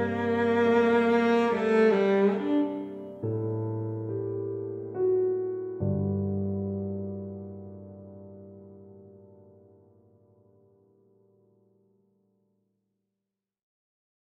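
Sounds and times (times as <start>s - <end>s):
cello and piano duet: 0.0s - 9.7s.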